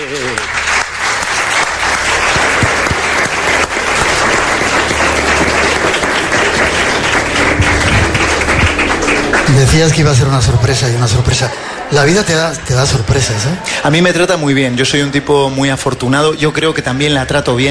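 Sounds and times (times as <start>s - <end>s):
audience applause: 0.0s - 13.7s
speech: 9.7s - 17.6s.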